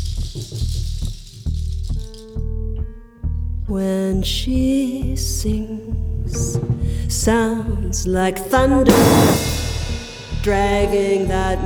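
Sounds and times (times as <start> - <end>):
rattle being shaken: 0.0 - 2.4
speech: 3.7 - 9.6, 10.4 - 11.6.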